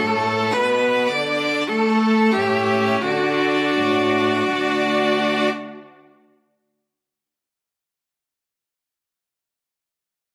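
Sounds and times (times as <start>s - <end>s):
string quartet playing: 0.0s - 6.2s.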